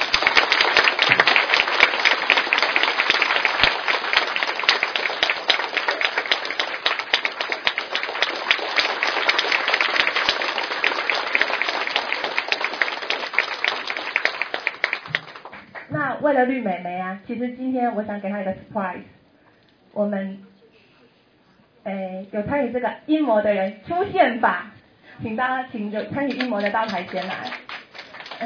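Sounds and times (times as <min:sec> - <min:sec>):
audience applause: 0:00.0 - 0:15.9, 0:26.3 - 0:28.4
speech: 0:16.4 - 0:19.1, 0:20.0 - 0:20.4, 0:22.4 - 0:27.6.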